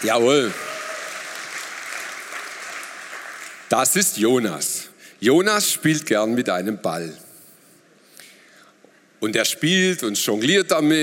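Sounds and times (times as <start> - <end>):
speech: 0.0 - 0.6, 3.7 - 7.3, 9.2 - 11.0
audience applause: 0.0 - 3.7.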